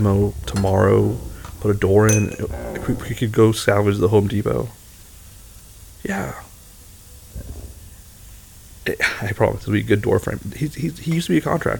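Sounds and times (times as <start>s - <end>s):
speech: 0.0s - 4.8s, 6.0s - 6.5s, 8.8s - 11.7s
running water at a sink while dishes are washed: 0.0s - 11.7s
dishes clattering at a sink: 0.5s - 3.2s.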